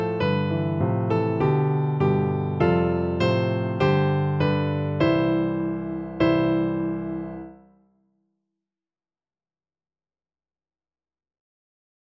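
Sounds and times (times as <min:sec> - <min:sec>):
piano duet: 0:00.0 - 0:07.7.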